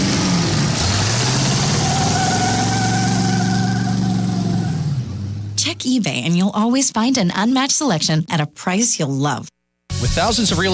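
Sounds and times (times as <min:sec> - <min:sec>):
supercharged car engine revving: 0:00.0 - 0:05.8
speech: 0:05.8 - 0:10.7.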